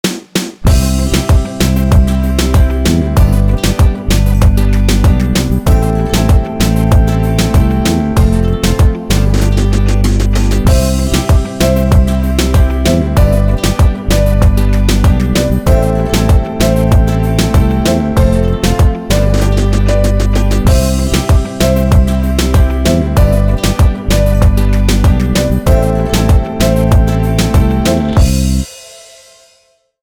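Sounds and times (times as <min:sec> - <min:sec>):
reggaeton instrumental: 0:00.0 - 0:29.2.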